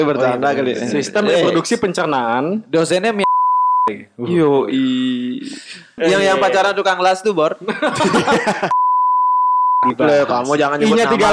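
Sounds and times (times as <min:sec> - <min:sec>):
speech: 0:00.0 - 0:03.3, 0:03.9 - 0:08.8, 0:09.8 - 0:11.3
censor bleep: 0:03.2 - 0:03.9, 0:08.7 - 0:09.9
laughter: 0:07.6 - 0:08.8.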